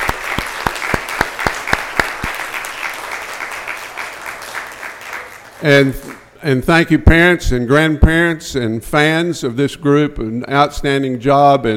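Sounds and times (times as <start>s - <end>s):
audience applause: 0.0s - 6.4s
speech: 5.6s - 11.7s.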